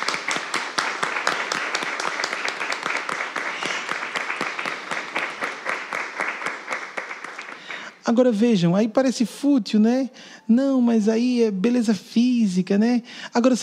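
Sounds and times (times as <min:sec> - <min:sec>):
audience applause: 0:00.0 - 0:07.9
speech: 0:08.1 - 0:13.6.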